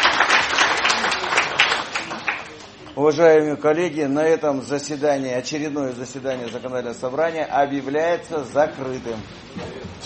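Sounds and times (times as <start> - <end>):
legislative assembly members applauding at a National Unity Day session: 0.0 - 3.0
speech: 3.0 - 10.0.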